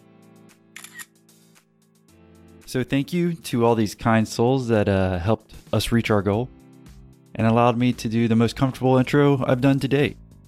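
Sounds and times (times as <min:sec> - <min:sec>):
phone camera shutter taking a selfie: 0:00.8 - 0:01.1
speech: 0:02.7 - 0:06.6, 0:07.4 - 0:10.2.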